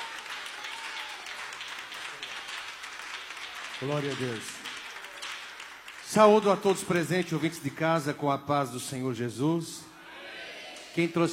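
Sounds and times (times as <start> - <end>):
audience applauding: 0.0 - 7.8
speech: 3.8 - 4.6, 6.1 - 9.9, 11.0 - 11.3.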